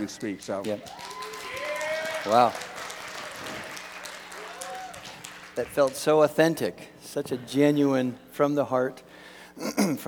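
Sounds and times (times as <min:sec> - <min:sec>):
speech: 0:00.0 - 0:01.3, 0:02.2 - 0:02.7, 0:05.6 - 0:10.0
audience applause: 0:00.7 - 0:06.0.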